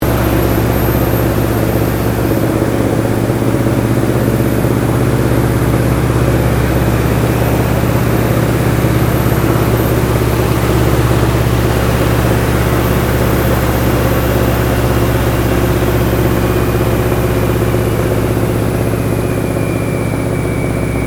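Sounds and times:
AT-6D Harvard Mk III American military training aircraft decelerating in flight interior: 0.0s - 21.0s.

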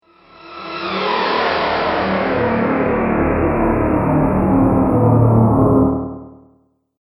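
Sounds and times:
flashback whoosh: 0.1s - 5.1s.

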